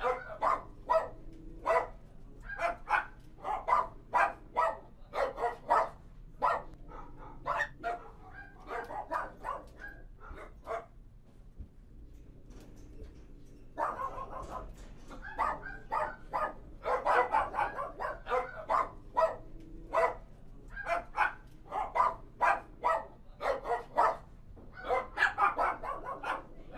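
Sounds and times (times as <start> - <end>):
dogs barking: 0.0 - 11.0, 13.7 - 26.7.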